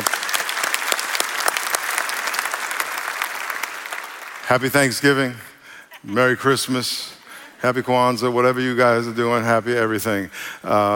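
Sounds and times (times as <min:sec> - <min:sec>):
church congregation applauding during a service at Rock Church in San Diego: 0:00.0 - 0:05.7
speech: 0:04.5 - 0:10.9.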